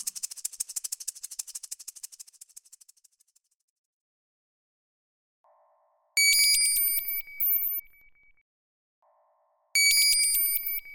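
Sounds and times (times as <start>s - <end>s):
alarm clock ringing: 6.2s - 7.9s, 9.8s - 10.9s.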